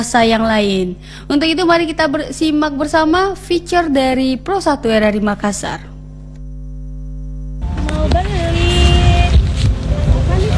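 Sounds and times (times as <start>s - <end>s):
speech: 0.0s - 5.9s
horn notes: 7.6s - 10.5s
roar of traffic on a busy street corner in Makassar: 7.6s - 10.5s.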